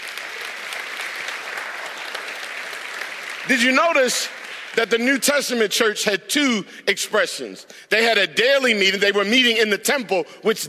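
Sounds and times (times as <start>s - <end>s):
audience hand clapping: 0.0s - 5.9s
speech: 3.4s - 10.6s.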